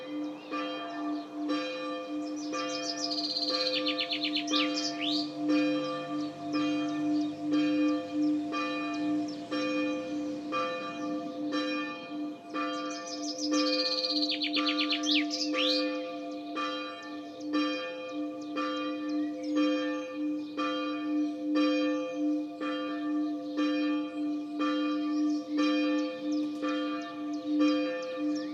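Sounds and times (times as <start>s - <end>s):
bird song of high chirping notes and twitters: 0.1s - 11.8s, 12.4s - 28.5s.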